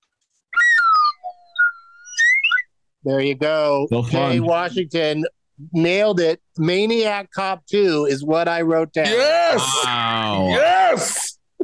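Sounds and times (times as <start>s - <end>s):
whistle sound effect gliding tones: 0.5s - 2.7s
speech: 3.0s - 11.3s.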